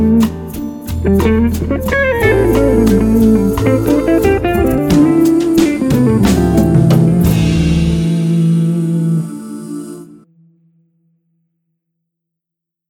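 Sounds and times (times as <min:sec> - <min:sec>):
bossa nova music: 0:00.0 - 0:10.2.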